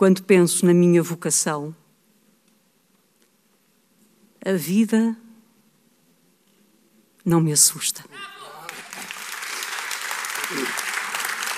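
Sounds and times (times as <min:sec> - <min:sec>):
speech: 0:00.0 - 0:01.8, 0:04.4 - 0:05.2, 0:07.2 - 0:08.3, 0:10.5 - 0:10.8
audience applause: 0:08.4 - 0:11.5.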